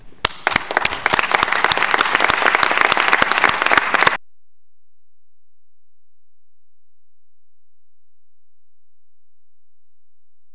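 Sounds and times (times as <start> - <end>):
audience applause: 0.2 - 4.2.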